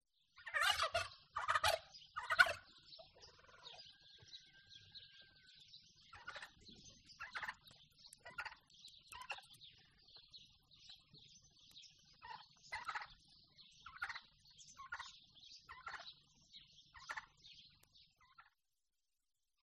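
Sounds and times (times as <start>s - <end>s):
domestic turkeys gobbling: 0.4s - 5.4s, 6.0s - 9.6s, 12.1s - 16.2s, 16.9s - 17.5s, 18.2s - 18.6s.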